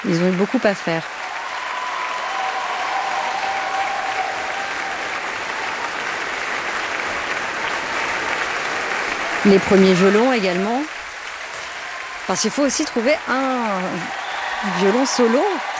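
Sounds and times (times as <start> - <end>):
speech: 0.0 - 1.3, 9.4 - 11.0, 12.3 - 15.7
concert audience applauding the orchestra: 0.0 - 15.7.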